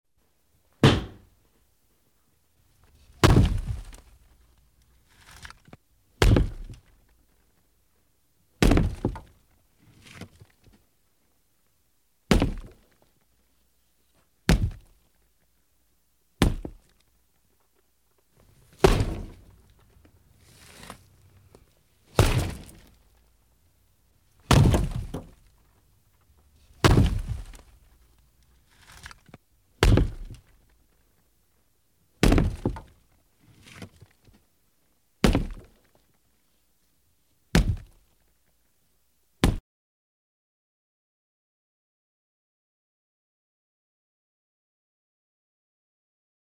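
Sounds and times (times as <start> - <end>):
plaster knocked off walls: 0.8 - 1.3, 3.2 - 4.0, 6.2 - 6.9, 8.6 - 9.3, 12.3 - 12.8, 14.5 - 14.9, 16.4 - 16.8, 18.6 - 19.6, 22.1 - 23.0, 24.4 - 25.5, 26.8 - 27.7, 29.8 - 30.5, 32.2 - 33.0, 35.2 - 35.7, 37.5 - 38.0.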